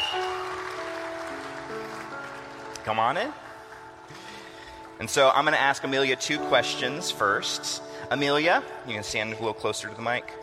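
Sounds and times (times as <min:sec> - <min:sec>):
audience cheering: 0:00.0 - 0:00.9
audience applauding: 0:00.0 - 0:05.4
speech: 0:02.8 - 0:03.4, 0:05.0 - 0:10.4.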